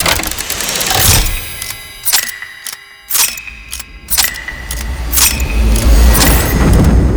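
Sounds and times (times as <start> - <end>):
war clock starting: 0.0 - 7.0.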